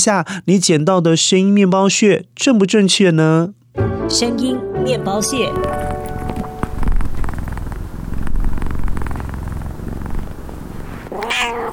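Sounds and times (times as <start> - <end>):
speech: 0.0 - 6.0
cat purring: 5.2 - 11.7.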